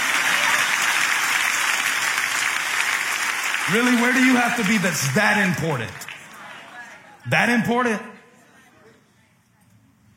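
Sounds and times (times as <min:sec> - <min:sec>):
audience clapping: 0:00.0 - 0:07.0
speech: 0:03.7 - 0:06.0, 0:07.2 - 0:08.1.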